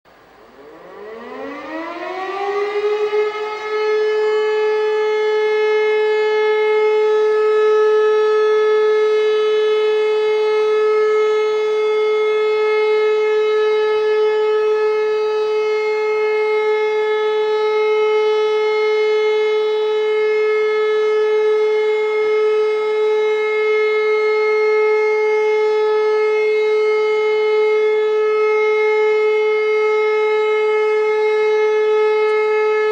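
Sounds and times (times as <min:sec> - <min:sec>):
all-clear siren signal: 0:00.1 - 0:32.9.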